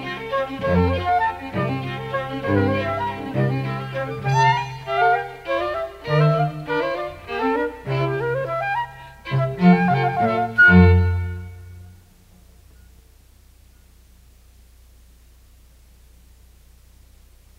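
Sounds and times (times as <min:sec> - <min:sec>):
chamber music waltz: 0:00.0 - 0:12.8.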